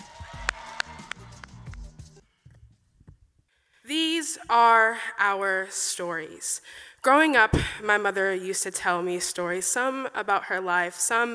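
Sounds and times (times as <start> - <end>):
audience applause: 0.0 - 1.9
speech: 3.9 - 11.3.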